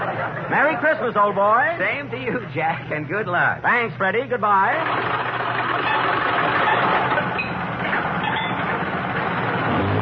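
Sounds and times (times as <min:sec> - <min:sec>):
speech: 0:00.5 - 0:05.3
old car engine sputtering and rumbling: 0:04.7 - 0:09.9.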